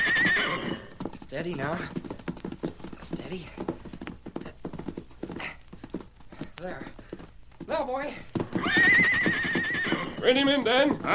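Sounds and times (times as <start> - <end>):
high-spirited colt's hoofbeats while being ridden: 0.0 - 11.1
speech: 1.3 - 2.0, 3.3 - 3.7, 10.2 - 11.1.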